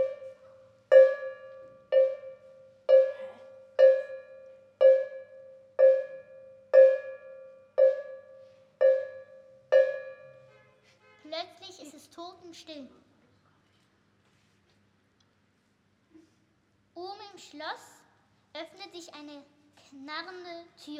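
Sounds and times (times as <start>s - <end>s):
tower clock striking: 0.0s - 10.4s
speech: 11.3s - 13.0s, 17.5s - 18.0s, 18.6s - 20.9s.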